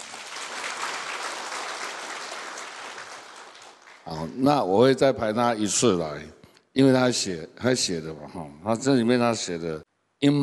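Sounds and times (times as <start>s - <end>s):
classroom applause: 0.0s - 4.3s
speech: 4.0s - 10.4s.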